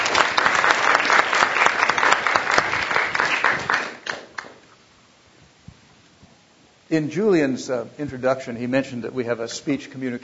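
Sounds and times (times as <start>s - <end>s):
audience applause: 0.0s - 4.6s
speech: 6.9s - 10.2s.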